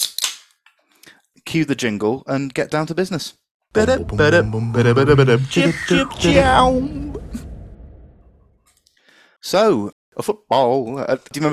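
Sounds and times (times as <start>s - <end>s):
can of lager being cracked open: 0.0s - 0.6s
speech: 1.5s - 7.1s, 9.5s - 11.5s.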